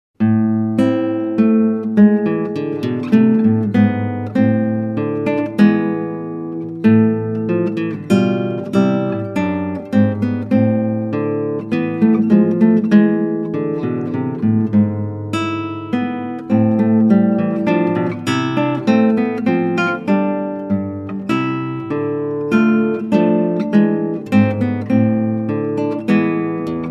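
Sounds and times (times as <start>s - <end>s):
classical guitar: 0.2s - 26.8s.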